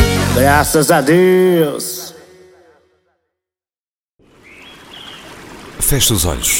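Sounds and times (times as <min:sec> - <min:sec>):
speech: 0:00.4 - 0:01.9, 0:05.9 - 0:06.5
thin high bird calls: 0:04.2 - 0:06.5.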